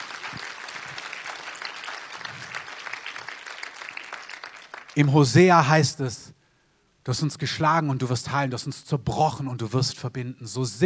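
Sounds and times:
audience clapping: 0.0s - 5.4s
speech: 5.0s - 6.4s, 7.1s - 10.8s.

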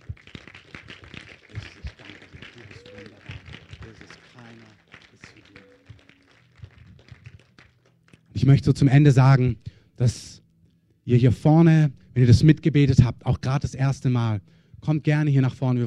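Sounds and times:
audience applauding: 0.0s - 8.4s
voices calling out and speaking: 1.9s - 4.3s
speech: 8.4s - 10.3s, 11.1s - 15.8s.

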